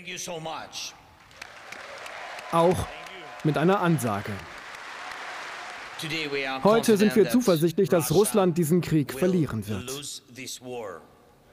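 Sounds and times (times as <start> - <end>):
speech: 0.0 - 1.0, 2.5 - 4.6, 6.0 - 11.2
thousands of people clapping and cheering outside the Danish parliament: 1.2 - 7.3.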